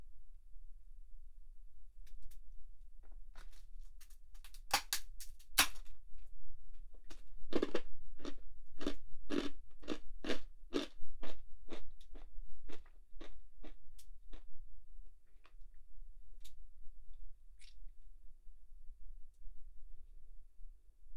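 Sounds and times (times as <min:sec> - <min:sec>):
crunchy snacks being bitten and chewed: 0:03.4 - 0:05.9, 0:07.0 - 0:14.5.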